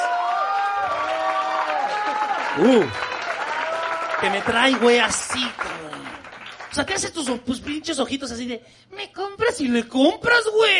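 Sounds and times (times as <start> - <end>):
crowd whooping and shouting: 0.0 - 4.6
crowd clapping: 0.0 - 8.0
speech: 2.6 - 3.1, 4.2 - 6.0, 6.7 - 10.7.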